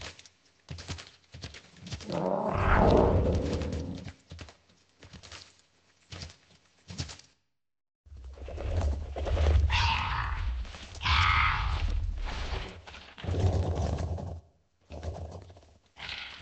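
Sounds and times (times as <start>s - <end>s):
black dragon in a swamp: 2.0s - 4.2s, 8.6s - 14.2s.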